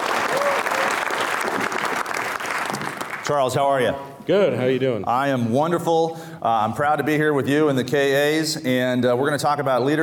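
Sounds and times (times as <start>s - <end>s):
audience applause welcoming a fraternity member at a live event in Lexington, Virginia: 0.0s - 3.3s
speech: 3.3s - 10.0s.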